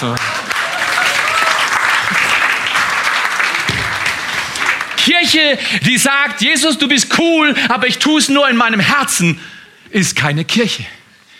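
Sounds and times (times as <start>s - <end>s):
speech: 0.0s - 0.3s, 5.0s - 11.0s
audience applause: 0.0s - 5.6s.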